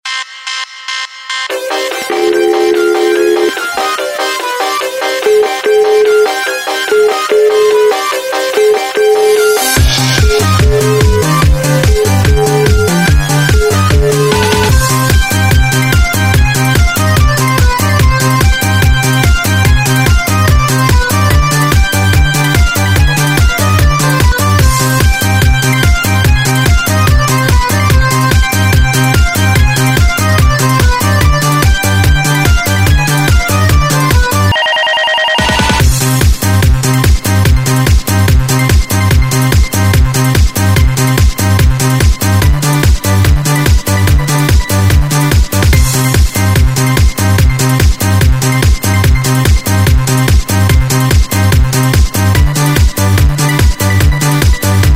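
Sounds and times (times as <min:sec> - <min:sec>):
instrumental music: 0:00.1 - 0:54.9.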